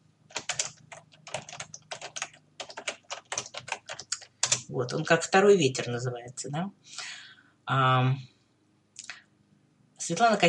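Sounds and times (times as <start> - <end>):
rapid keyboard typing: 0.3 - 6.0
speech: 4.7 - 7.0, 7.7 - 8.3, 10.1 - 10.4.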